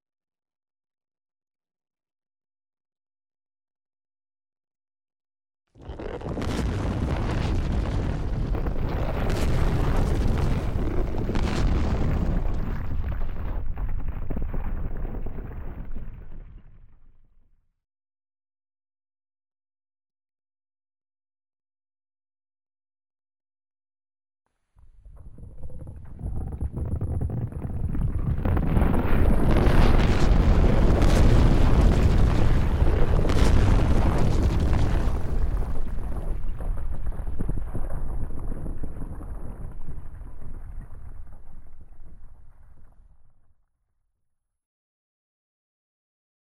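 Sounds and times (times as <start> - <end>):
ground movement: 5.8 - 16.3, 24.8 - 39.3.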